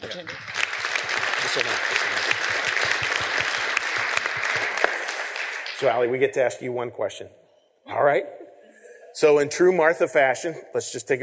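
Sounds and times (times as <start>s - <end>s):
speech: 0.0s - 0.6s, 1.4s - 3.6s, 5.8s - 8.4s, 9.2s - 11.2s
audience applause: 0.0s - 6.2s.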